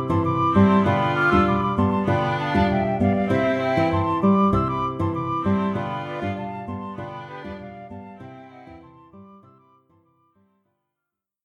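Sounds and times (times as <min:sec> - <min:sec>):
sextet playing: 0:00.1 - 0:08.8.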